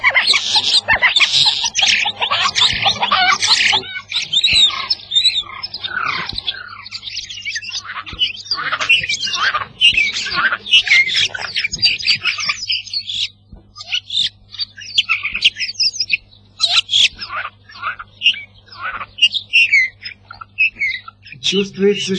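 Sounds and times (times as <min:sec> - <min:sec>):
faint low hum: 0:00.0 - 0:22.1
starling singing, mimicking hen clucking: 0:00.0 - 0:22.1
speech: 0:21.5 - 0:22.1.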